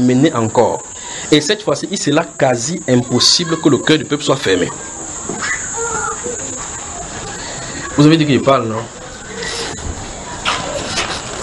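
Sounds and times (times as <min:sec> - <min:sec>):
speech: 0:00.0 - 0:05.5, 0:08.0 - 0:09.0
steady high-pitched hiss: 0:00.0 - 0:11.4
monkey calling: 0:02.7 - 0:11.4.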